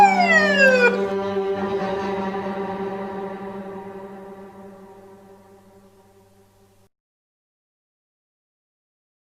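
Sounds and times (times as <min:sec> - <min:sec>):
music with siren: 0:00.0 - 0:05.2.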